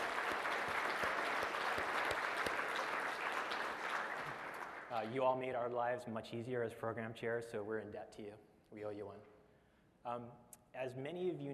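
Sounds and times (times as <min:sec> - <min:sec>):
audience applause: 0:00.0 - 0:05.2
speech: 0:04.9 - 0:09.4, 0:10.0 - 0:11.5.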